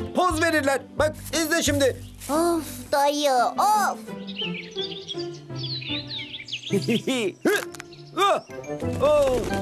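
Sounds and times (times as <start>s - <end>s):
speech: 0.3s - 6.1s, 6.7s - 9.6s
bird calling: 3.6s - 9.6s.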